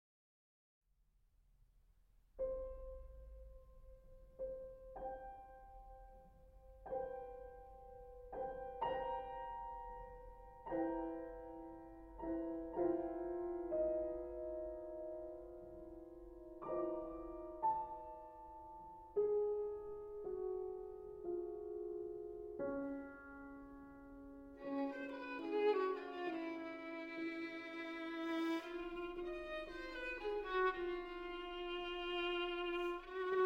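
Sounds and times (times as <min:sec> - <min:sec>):
sostenuto piano: 0:02.3 - 0:33.4
violin: 0:24.6 - 0:33.4.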